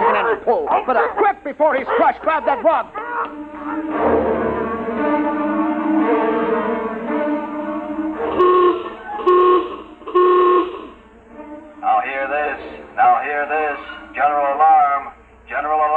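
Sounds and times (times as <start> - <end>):
speech: 0.5 - 4.4
wavering tonal droning: 2.8 - 15.9
general alarm horn blasts: 3.4 - 14.6.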